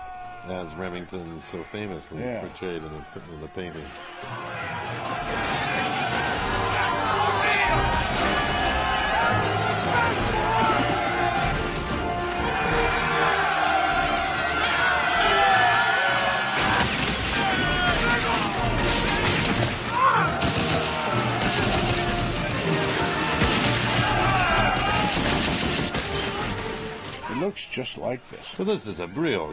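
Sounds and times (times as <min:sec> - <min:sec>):
roaring crowd in film battle scene: 0:00.0 - 0:27.6
speech: 0:00.4 - 0:06.3, 0:27.4 - 0:29.5
gunfire in film battle scene of the charge up San Juan Hill: 0:16.6 - 0:26.8.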